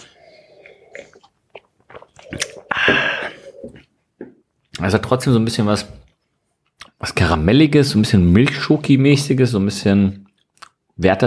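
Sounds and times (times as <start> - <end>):
noisy slurp of a drink being tasted: 0.0 - 3.9
mouth smacks while tasting a drink: 0.6 - 3.9, 10.2 - 10.8
speech: 4.8 - 6.0, 7.2 - 10.2, 11.0 - 11.2.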